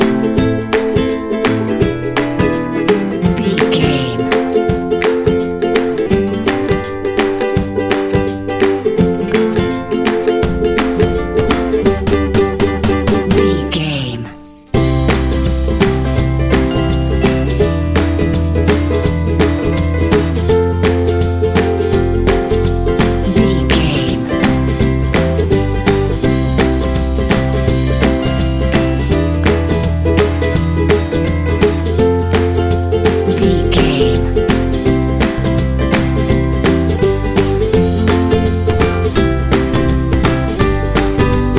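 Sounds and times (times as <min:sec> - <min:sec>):
upbeat ukulele music full mix: 0:00.0 - 0:41.5.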